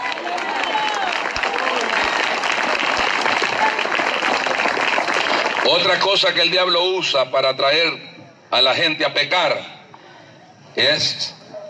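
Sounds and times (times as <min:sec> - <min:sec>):
murmured voices and cheers: 0:00.0 - 0:05.8
audience applause: 0:00.0 - 0:06.2
speech: 0:05.7 - 0:09.7, 0:10.8 - 0:11.4.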